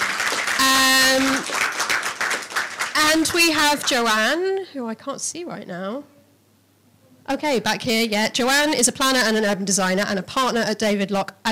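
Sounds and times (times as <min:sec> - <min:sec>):
audience clapping: 0:00.0 - 0:04.3
speech: 0:03.1 - 0:06.2, 0:07.3 - 0:11.4.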